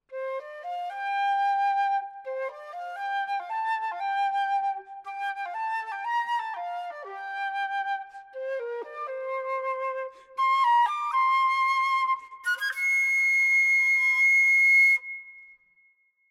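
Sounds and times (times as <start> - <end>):
happy flute melody: 0.1 - 15.4.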